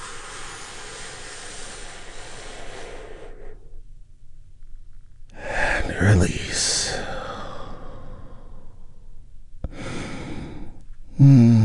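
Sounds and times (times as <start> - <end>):
deep breath during a guided relaxation exercise: 0.0 - 3.9, 6.9 - 11.6
speech: 6.0 - 7.0, 11.2 - 11.5.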